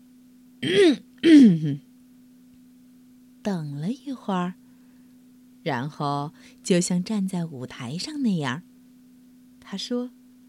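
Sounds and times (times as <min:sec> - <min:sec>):
faint low hum: 0:00.0 - 0:10.4
person clearing throat: 0:00.6 - 0:01.9
speech: 0:00.6 - 0:01.9, 0:03.4 - 0:04.6, 0:05.6 - 0:08.7, 0:09.7 - 0:10.2.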